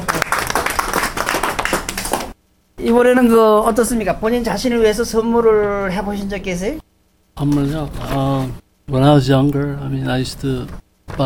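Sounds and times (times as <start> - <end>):
church congregation clapping: 0.0 - 2.4
speech: 2.8 - 11.2.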